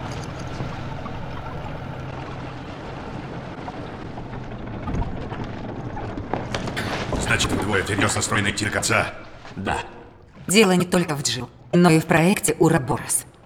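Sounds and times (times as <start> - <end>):
boat engine drone: 0.0 - 8.5
rough churning wash of water: 0.0 - 13.4
speech: 7.3 - 13.3.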